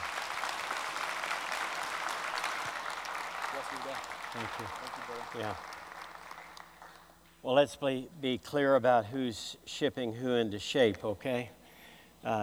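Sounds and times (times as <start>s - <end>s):
Kearney E-Free church congregation applauding to welcome a guest: 0.0s - 7.2s
speech: 3.6s - 5.7s, 7.4s - 11.6s, 12.2s - 12.4s.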